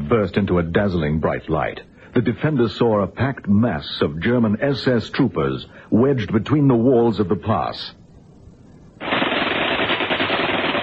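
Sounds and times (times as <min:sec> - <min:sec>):
speech: 0:00.1 - 0:08.0
machine gun bursts: 0:09.0 - 0:10.8
rifle shots: 0:09.0 - 0:10.8.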